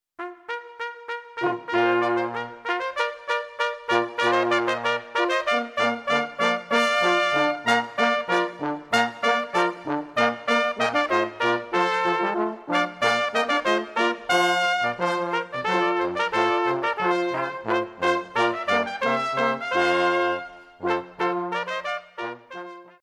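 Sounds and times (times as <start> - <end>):
baroque orchestral music: 1.4 - 23.0.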